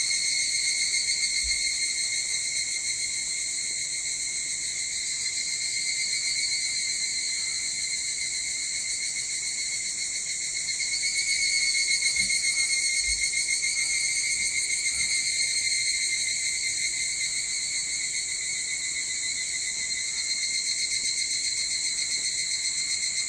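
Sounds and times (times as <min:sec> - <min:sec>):
evening cicada chorus: 0:00.0 - 0:23.2.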